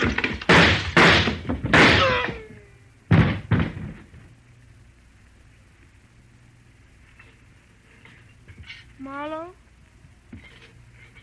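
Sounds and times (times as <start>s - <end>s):
gunshots in a radio drama: 0.0s - 2.4s.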